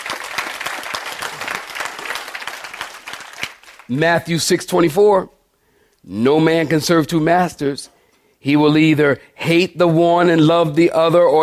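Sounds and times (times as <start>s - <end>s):
audience clapping: 0.0s - 4.0s
speech: 3.9s - 5.4s, 6.0s - 11.4s.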